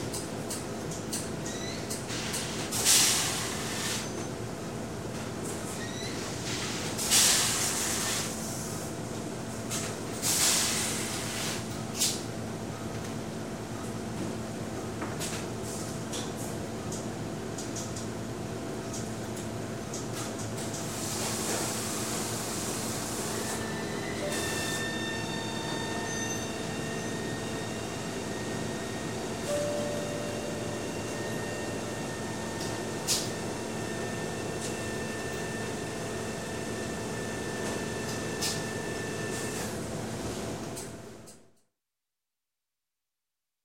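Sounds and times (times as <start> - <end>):
dry cleaning plant general ambience: 0.0 - 41.2.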